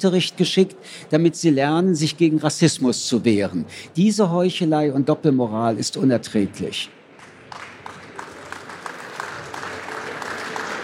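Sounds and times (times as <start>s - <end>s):
speech: 0.0s - 7.0s
audience applause: 7.2s - 10.8s.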